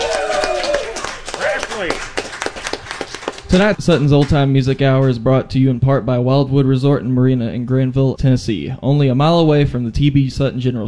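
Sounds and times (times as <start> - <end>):
audience applause: 0.0 - 3.6
speech: 3.5 - 10.8.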